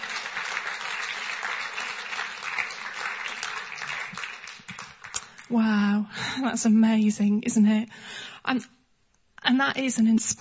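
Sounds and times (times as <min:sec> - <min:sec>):
crowd applause: 0:00.0 - 0:05.5
speech: 0:05.5 - 0:08.8, 0:09.5 - 0:10.3.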